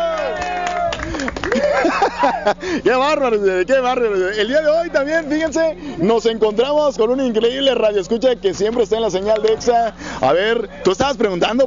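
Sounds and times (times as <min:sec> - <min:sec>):
applause: 0:00.0 - 0:01.9
laughter: 0:01.1 - 0:02.8, 0:09.2 - 0:11.0
speech: 0:02.2 - 0:11.6.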